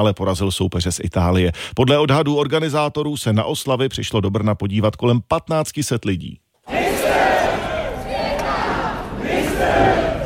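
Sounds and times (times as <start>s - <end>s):
speech: 0.0s - 6.4s
cheering: 6.7s - 10.2s
large excited crowd chanting: 6.7s - 10.2s.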